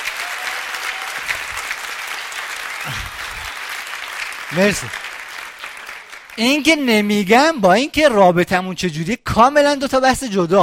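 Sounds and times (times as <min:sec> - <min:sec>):
audience applause at a live event: 0:00.0 - 0:07.3
speech: 0:04.5 - 0:05.0, 0:06.4 - 0:10.6.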